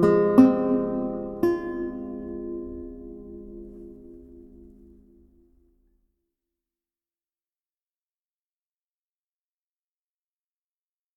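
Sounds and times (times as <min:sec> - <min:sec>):
prelude on lute: 0:00.0 - 0:05.5.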